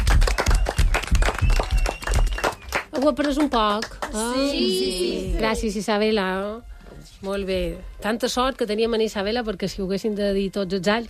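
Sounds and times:
loud applause in a quiz-style group game: 0.0 - 3.0
speech: 3.0 - 11.0.

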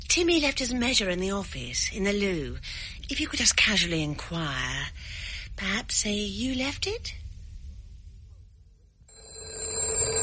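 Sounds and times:
speech: 0.0 - 7.2
telephone ringing: 9.1 - 10.2.

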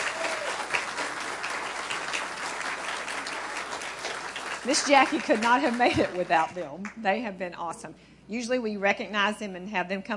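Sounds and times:
audience applause: 0.0 - 6.5
speech: 4.6 - 10.1.

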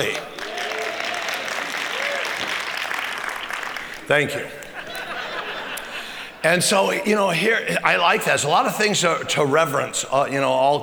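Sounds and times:
speech: 0.0 - 0.3, 4.1 - 4.6, 6.4 - 10.8
audience clapping: 0.0 - 6.5
laughter: 0.0 - 10.8.

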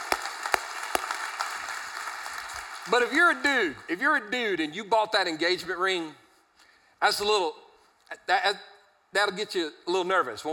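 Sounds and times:
sparse claps: 0.0 - 3.3
hiss: 0.0 - 10.5
speech: 2.9 - 6.2, 7.0 - 10.5.

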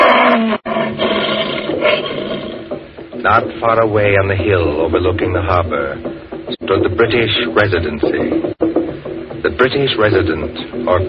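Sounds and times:
lion roaring: 0.0 - 2.8
speech: 3.3 - 8.6, 9.4 - 11.0.

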